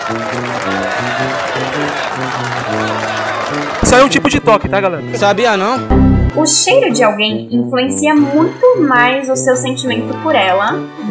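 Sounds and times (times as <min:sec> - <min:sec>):
voices cheering and calling out: 0:00.0 - 0:04.4
applause: 0:00.0 - 0:04.6
speech: 0:00.1 - 0:11.0.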